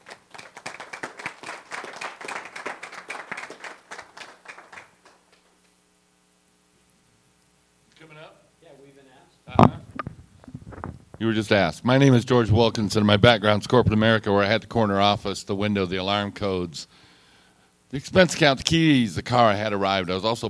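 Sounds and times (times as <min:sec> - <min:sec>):
audience applauding: 0:00.0 - 0:05.4
low electrical hum: 0:00.0 - 0:20.4
sharp thump: 0:09.5 - 0:11.1
speech: 0:11.2 - 0:17.0, 0:17.9 - 0:20.4.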